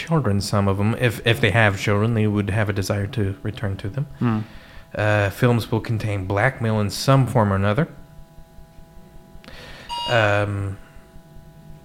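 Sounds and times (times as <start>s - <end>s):
speech: 0.0s - 8.0s, 10.1s - 10.8s
work phone ringing: 9.9s - 10.5s.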